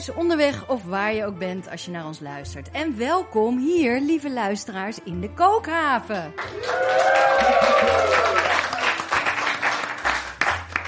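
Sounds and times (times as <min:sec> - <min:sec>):
speech: 0:00.0 - 0:08.4
live studio audience applauding and cheering: 0:06.4 - 0:10.8
people whooping: 0:06.5 - 0:09.1.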